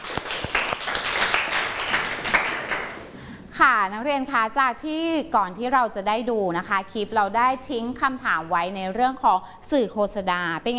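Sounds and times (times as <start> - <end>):
group clapping in applause: 0.0 - 3.2
speech: 3.6 - 10.7.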